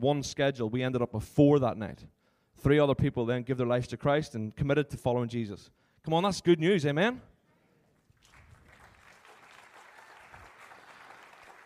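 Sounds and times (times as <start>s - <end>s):
speech: 0.0s - 7.3s
audience clapping: 8.0s - 11.6s.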